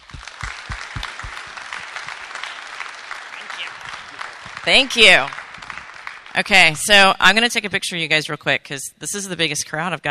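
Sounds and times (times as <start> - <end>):
audience applause: 0.0 - 7.1
speech: 4.7 - 5.4, 6.4 - 10.1.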